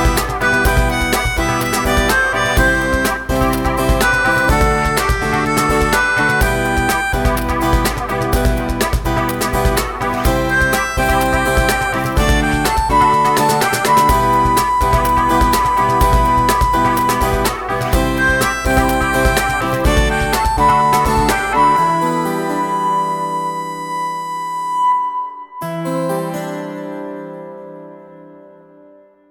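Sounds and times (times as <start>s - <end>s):
acoustic music: 0.0s - 29.2s.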